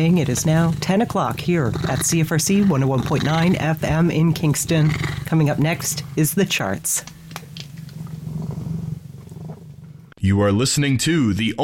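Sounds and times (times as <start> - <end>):
speech: 0.0 - 7.2, 10.3 - 11.6
cat purring: 0.0 - 10.2.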